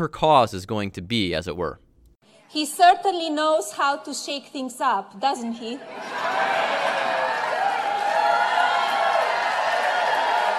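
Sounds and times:
speech: 0.0 - 1.8, 2.5 - 6.6
audience applause: 6.0 - 10.5.

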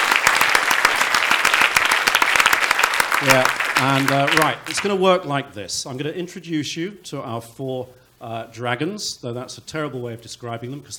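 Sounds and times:
audience applause: 0.0 - 5.0
speech: 3.2 - 10.9.

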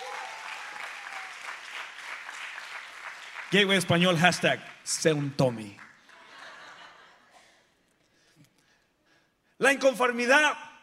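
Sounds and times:
loud applause: 0.0 - 6.8
speech: 3.5 - 5.8, 9.6 - 10.6
laughter: 6.1 - 7.6.

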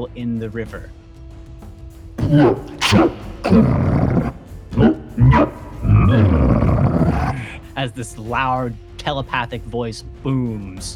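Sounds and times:
speech: 0.0 - 1.0, 2.3 - 4.0, 7.8 - 10.9
person vocally imitating a cat coughing up a hairball: 2.2 - 7.6.

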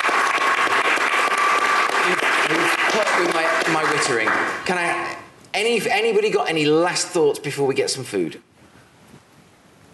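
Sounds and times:
audience applauding: 0.0 - 4.7
speech: 4.0 - 8.5.

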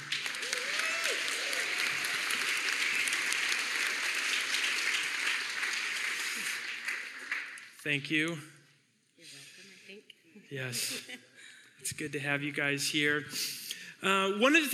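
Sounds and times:
audience cheering: 0.0 - 6.6
audience applause: 0.0 - 7.8
speech: 7.8 - 8.5, 10.5 - 11.2, 11.9 - 14.7.

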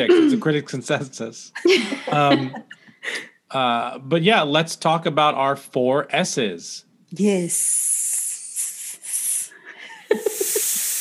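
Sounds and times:
speech: 0.0 - 7.9
laughter: 1.6 - 2.7, 9.9 - 10.8
snake sound effect hissing: 7.9 - 9.6, 10.2 - 10.9.

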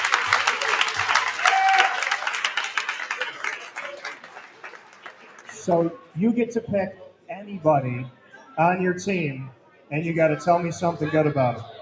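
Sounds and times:
hockey crowd cheering and applauding: 0.0 - 6.2
speech: 5.6 - 11.7.

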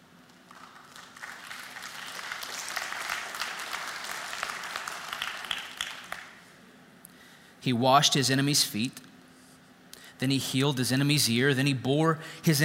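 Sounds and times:
audience applause: 0.3 - 6.4
speech: 7.6 - 9.1, 10.2 - 12.6.

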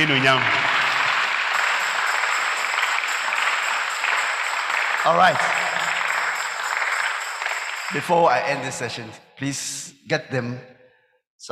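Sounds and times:
speech: 0.0 - 0.6, 5.0 - 5.6, 7.9 - 10.7
crowd clapping: 0.0 - 9.0.

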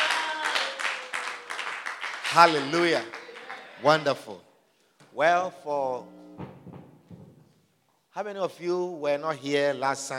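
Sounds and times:
audience clapping: 0.0 - 4.2
speech: 2.3 - 3.2, 3.8 - 4.5, 5.2 - 6.4, 8.2 - 10.1.

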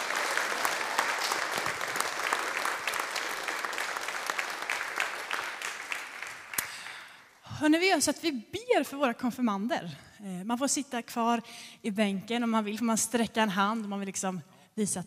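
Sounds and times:
audience applauding: 0.0 - 7.2
speech: 7.6 - 15.0.

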